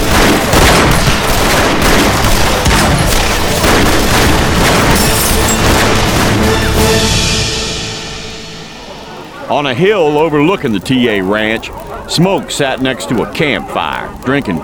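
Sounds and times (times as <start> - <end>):
gunfire volley hitting a building: 0.0 - 7.2
speech: 9.5 - 14.6.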